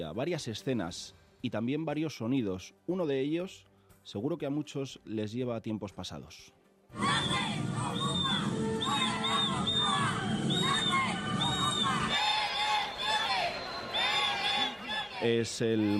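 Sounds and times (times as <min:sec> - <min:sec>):
speech: 0:00.0 - 0:08.0, 0:15.2 - 0:15.9
shrill whistles from the crowd: 0:07.0 - 0:15.2
crowd on the Paseo de la Castellana jeering at Pedro Sánchez, demanding elections: 0:07.0 - 0:15.9.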